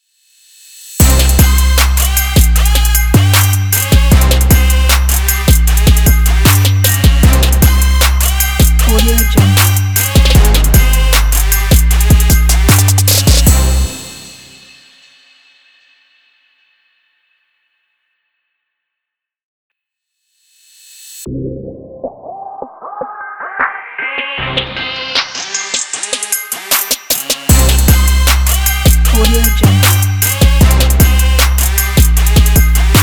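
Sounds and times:
hip hop trap sport logo music: 0.9 - 14.9, 21.2 - 33.0.

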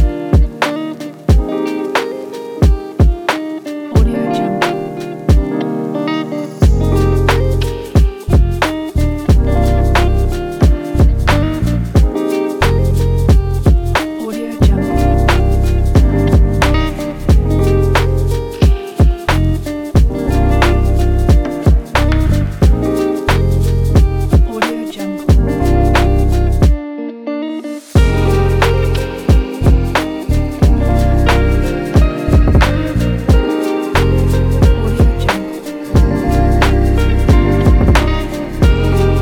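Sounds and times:
peaceful lofi chill lounge guitar music: 0.0 - 39.2.

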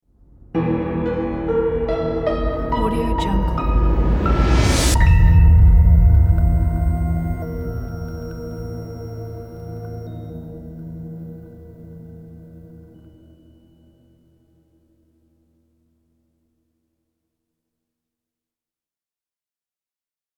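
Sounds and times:
creepy horror ident: 0.5 - 14.3.

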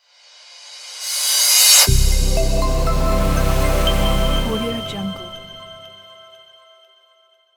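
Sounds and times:
logo intro reveal sting: 1.2 - 5.8.

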